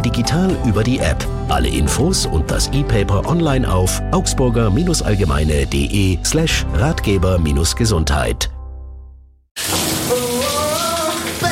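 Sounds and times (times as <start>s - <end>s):
speech: 0.0s - 8.6s
running shower water: 9.6s - 11.4s.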